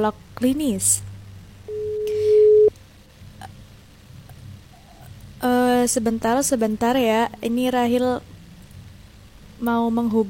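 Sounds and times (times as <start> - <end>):
speech: 0.0 - 1.1, 5.4 - 8.3, 9.6 - 10.2
phone ringing tone while calling a clinical psychologist: 1.7 - 2.7.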